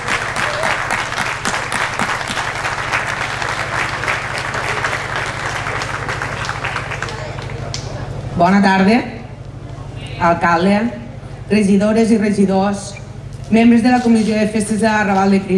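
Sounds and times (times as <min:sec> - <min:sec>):
crowd applauding: 0:00.0 - 0:08.4
low steady hum: 0:00.0 - 0:15.5
speech: 0:08.4 - 0:09.2, 0:10.2 - 0:15.5.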